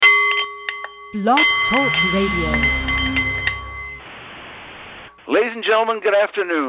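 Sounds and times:
Nepalese meditation bowl chiming: 0.0s - 4.1s
speech: 1.1s - 2.8s, 5.3s - 6.6s.

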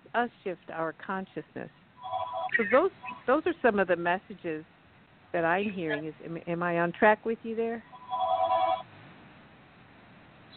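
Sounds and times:
speech: 0.2s - 1.8s, 2.6s - 4.7s, 5.3s - 7.9s
telephone ringing: 2.0s - 3.3s, 7.9s - 8.9s.

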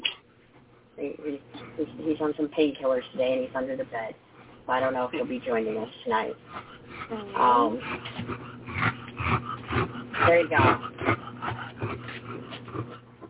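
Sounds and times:
speech: 1.0s - 9.0s, 9.8s - 11.2s
small dog snorting and wheezing through a narrow airway: 6.3s - 13.2s.

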